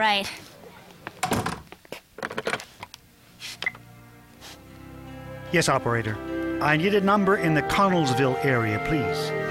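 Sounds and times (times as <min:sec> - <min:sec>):
speech: 0:00.0 - 0:00.5, 0:05.5 - 0:09.4
door being shut: 0:01.2 - 0:01.7.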